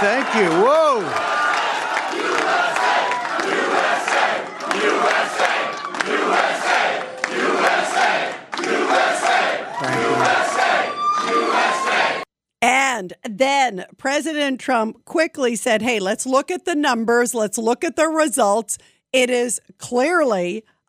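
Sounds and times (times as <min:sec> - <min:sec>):
speech: 0:00.0 - 0:01.4, 0:13.0 - 0:20.8
large crowd chanting USA: 0:00.0 - 0:12.3.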